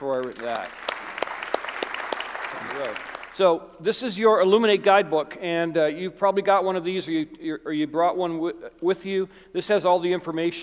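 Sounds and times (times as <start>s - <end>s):
speech: 0.0s - 0.9s, 2.5s - 10.6s
audience applauding military veterans: 0.0s - 3.4s.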